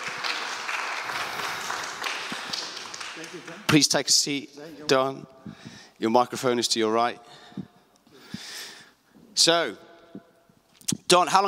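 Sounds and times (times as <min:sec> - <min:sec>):
audience applause: 0:00.0 - 0:03.7
speech: 0:03.2 - 0:07.4, 0:09.4 - 0:10.2, 0:11.1 - 0:11.4.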